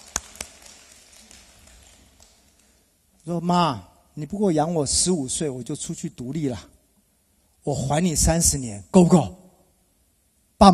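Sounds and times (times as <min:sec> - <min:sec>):
audience clapping hands: 0:00.0 - 0:02.9
speech: 0:03.2 - 0:06.8, 0:07.6 - 0:09.4, 0:10.6 - 0:10.7.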